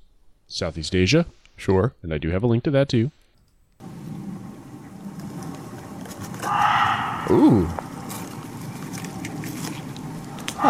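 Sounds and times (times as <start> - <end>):
speech: 0.5 - 3.2, 7.3 - 7.8
muntjac barking deer call: 6.4 - 7.9.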